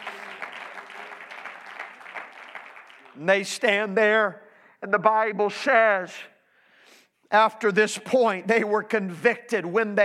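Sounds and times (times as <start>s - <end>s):
audience clapping: 0.0s - 4.0s
speech: 3.2s - 6.3s, 7.3s - 10.0s.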